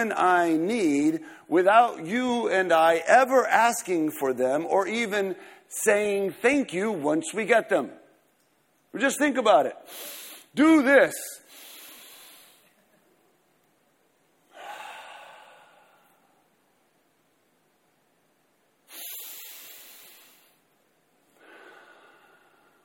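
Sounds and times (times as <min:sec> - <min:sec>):
speech: 0:00.0 - 0:08.0, 0:08.9 - 0:11.4
deep breaths taken as a demonstration: 0:05.4 - 0:05.7, 0:09.8 - 0:10.6, 0:11.4 - 0:12.8, 0:14.5 - 0:16.4, 0:18.9 - 0:20.7, 0:21.3 - 0:22.8.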